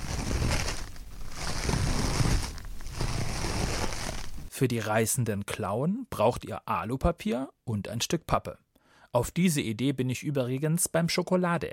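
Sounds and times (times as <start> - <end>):
toilet paper rubbed between hands imitating footsteps in snow: 0.0 - 4.5
speech: 4.6 - 11.7.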